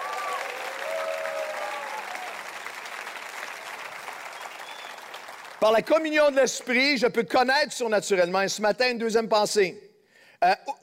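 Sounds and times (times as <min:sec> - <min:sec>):
church congregation cheering: 0:00.0 - 0:05.7
church congregation clapping: 0:00.0 - 0:06.8
speech: 0:05.6 - 0:09.8, 0:10.4 - 0:10.8.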